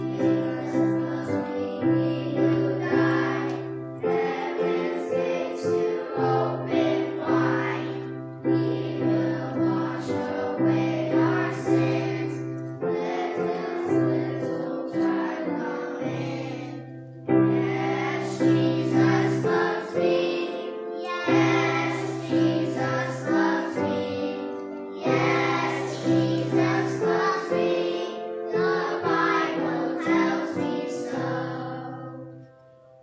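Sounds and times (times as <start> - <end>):
Sunday school children: 0.0 - 33.0.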